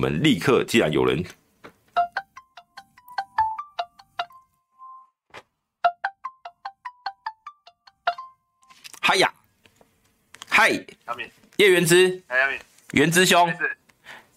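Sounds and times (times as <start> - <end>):
speech: 0.0 - 1.4, 10.6 - 13.8
phone ringing over a speakerphone: 2.0 - 5.1, 5.8 - 8.6.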